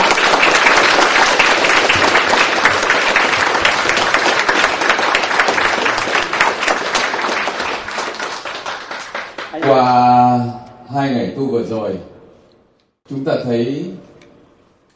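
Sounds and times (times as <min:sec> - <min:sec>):
large audience applauding: 0:00.0 - 0:10.0
speech: 0:11.0 - 0:12.1, 0:13.1 - 0:14.0.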